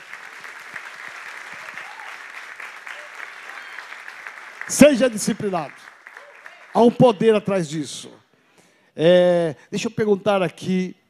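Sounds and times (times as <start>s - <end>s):
church audience applauding: 0.0s - 7.4s
speech: 4.7s - 5.9s, 6.8s - 8.2s, 9.0s - 11.0s.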